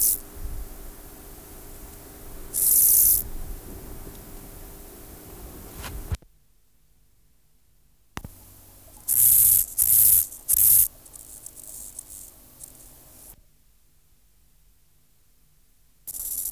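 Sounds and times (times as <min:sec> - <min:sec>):
Chorthippus grasshopper song: 0:00.0 - 0:06.2, 0:08.2 - 0:13.4, 0:16.1 - 0:16.5.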